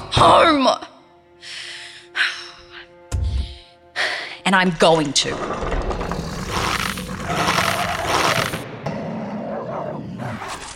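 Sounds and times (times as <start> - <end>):
speech: 0.2 - 1.6, 4.5 - 5.7
dog growling outside a door: 6.0 - 10.7.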